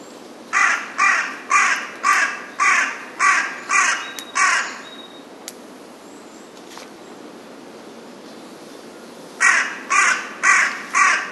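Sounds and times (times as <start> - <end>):
Carrion crow cawing: 0.5 - 4.8, 9.4 - 11.3.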